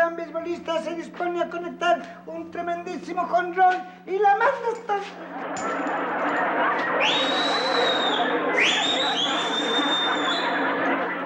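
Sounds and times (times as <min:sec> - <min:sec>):
speech: 0:00.5 - 0:09.9
laughter: 0:05.0 - 0:11.2
shrill whistles at the umpire: 0:07.0 - 0:10.6.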